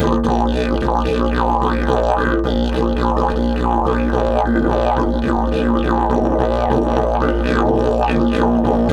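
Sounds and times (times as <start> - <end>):
didgeridoo at 108 bpm: 0.0 - 8.9.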